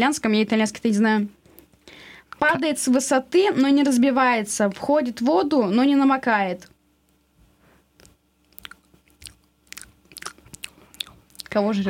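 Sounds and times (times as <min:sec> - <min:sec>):
speech: 0:00.0 - 0:01.4, 0:02.4 - 0:06.7, 0:11.6 - 0:11.8
person chewing and biting crunchy food: 0:08.0 - 0:11.6.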